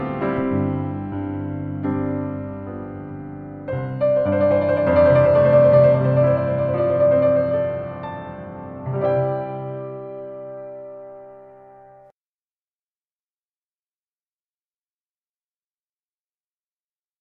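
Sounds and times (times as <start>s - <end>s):
meditative piano: 0.0s - 12.1s.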